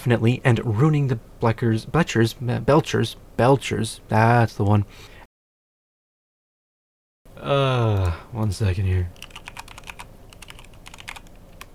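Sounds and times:
speech: 0.0 - 5.1, 7.4 - 9.2
typing on a computer keyboard: 9.2 - 11.7.

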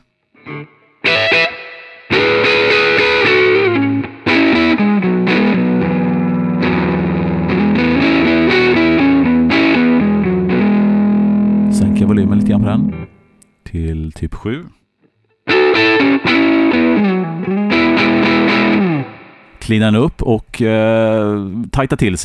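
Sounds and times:
loud distorted electric guitar played on the neck pickup: 0.0 - 13.4, 15.5 - 19.6
speech: 19.7 - 22.2.

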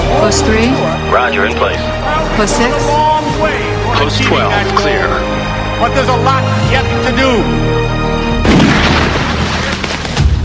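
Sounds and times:
speech: 0.3 - 7.9
gunshot from a homemade gun: 8.4 - 10.4.

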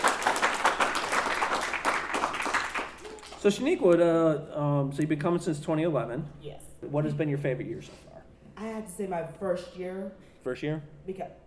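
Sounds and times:
round of applause: 0.0 - 3.7
speech: 3.4 - 11.4.

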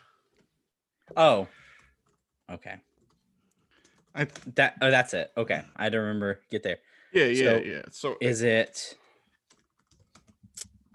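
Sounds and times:
speech: 1.1 - 1.6, 2.5 - 2.9, 4.2 - 9.0
typing on a computer keyboard: 9.4 - 10.5.

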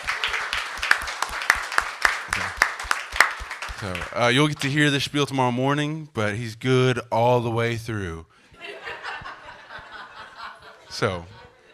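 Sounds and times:
audience applause: 0.0 - 4.9
speech: 3.8 - 8.4, 11.0 - 11.4
laughter: 8.6 - 11.7.

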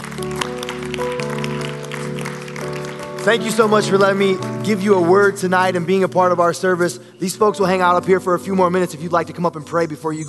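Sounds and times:
audience hand clapping: 0.0 - 5.0
speech: 3.2 - 10.2.

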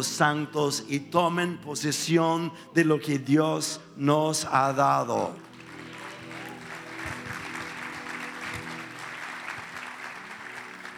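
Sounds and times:
speech: 0.0 - 5.5
audience applause: 5.4 - 10.9.

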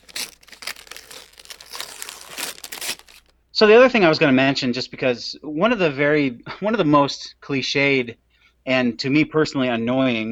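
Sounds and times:
wrapping paper crinkling as a Christmas present is unwrapped: 0.0 - 3.3
speech: 3.6 - 10.3.

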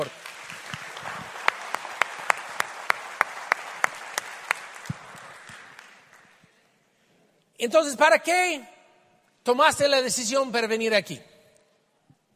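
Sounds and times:
audience applause: 0.0 - 6.5
speech: 7.6 - 8.7, 9.5 - 11.3.

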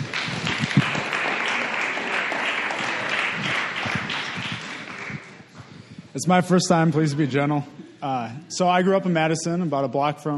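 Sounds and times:
audience applause: 0.0 - 5.5
speech: 6.2 - 10.3.

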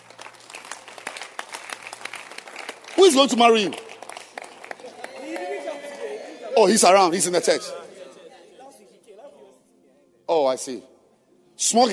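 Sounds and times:
audience clapping: 0.0 - 6.1
speech: 3.0 - 3.9, 6.6 - 7.8, 10.6 - 10.9, 11.6 - 11.9.

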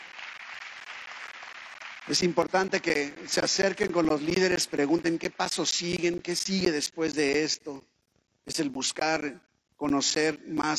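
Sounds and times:
audience applause: 0.0 - 6.1
speech: 2.1 - 10.7.

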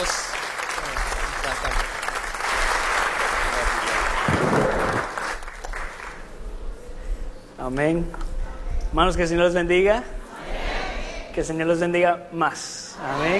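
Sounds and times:
audience applause: 0.0 - 6.2
speech: 7.7 - 8.3, 8.9 - 10.2, 11.4 - 13.3.

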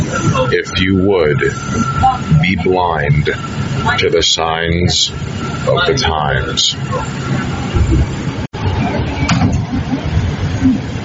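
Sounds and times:
subway train doors: 0.0 - 11.0
speech: 0.2 - 8.1.

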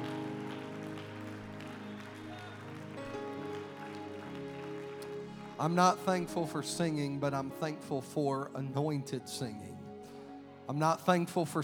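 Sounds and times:
audience hand clapping: 0.0 - 7.6
speech: 5.6 - 9.7, 10.7 - 11.6.

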